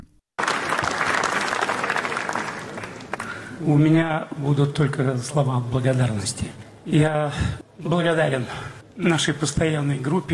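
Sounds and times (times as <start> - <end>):
large crowd ovation after a film premiere: 0.4 - 3.6
speech: 3.6 - 10.3.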